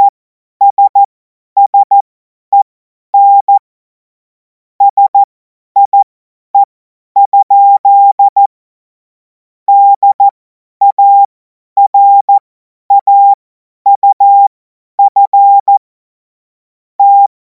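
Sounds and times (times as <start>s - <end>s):
CW Morse code beeps: 0.0s - 2.6s, 3.2s - 3.6s, 4.8s - 8.5s, 9.7s - 15.8s, 17.0s - 17.3s.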